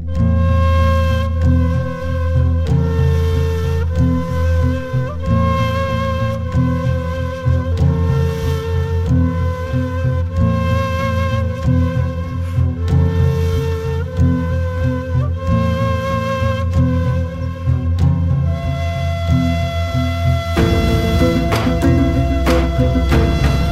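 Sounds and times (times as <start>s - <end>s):
ney flute ringtone: 0.1s - 23.7s.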